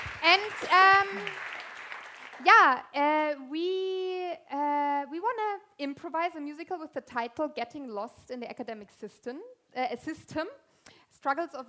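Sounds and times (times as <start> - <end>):
audience applause for a musician at an improvised musical: 0.0 - 2.4
speech: 0.2 - 1.5, 2.4 - 10.6, 11.2 - 11.6.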